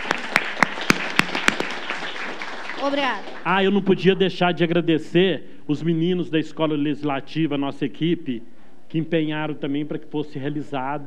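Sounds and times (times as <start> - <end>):
sparse hand claps at the close of an Escola Legislativa event in Brazil: 0.0 - 3.5
speech: 2.8 - 11.0.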